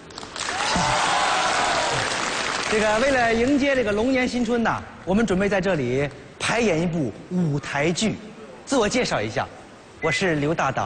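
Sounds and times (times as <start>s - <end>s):
audience applause at a Lunar New Year stage show: 0.1s - 3.1s
speech: 2.7s - 10.8s.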